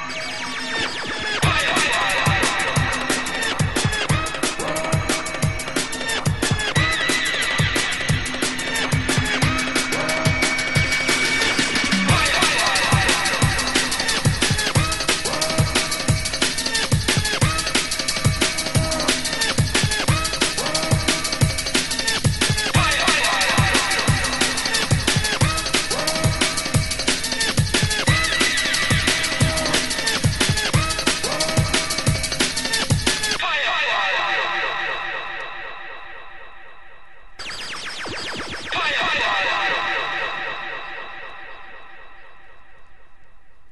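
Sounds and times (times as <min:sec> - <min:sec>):
radio station jingle: 0:00.1 - 0:32.5, 0:33.3 - 0:42.3.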